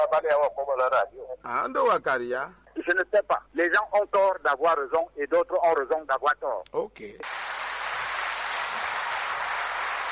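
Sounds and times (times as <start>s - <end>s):
speech: 0.1s - 7.5s
audience applause: 7.3s - 10.1s.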